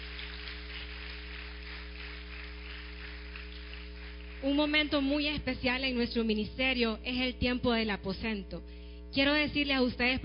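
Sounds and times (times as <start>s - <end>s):
crowd clapping: 0.0s - 5.2s
low constant hum: 0.0s - 10.2s
speech: 4.4s - 10.2s.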